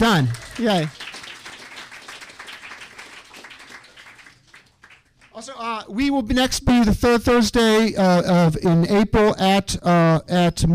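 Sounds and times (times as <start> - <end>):
speech: 0.0 - 1.0, 5.4 - 10.7
audience clapping at a writing gathering: 0.0 - 5.7.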